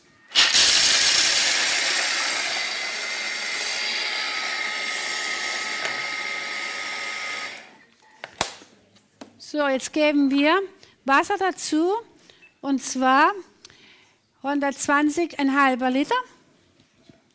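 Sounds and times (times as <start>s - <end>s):
blender grinding dry nuts: 0.0s - 7.7s
speech: 9.5s - 13.5s, 14.4s - 16.4s.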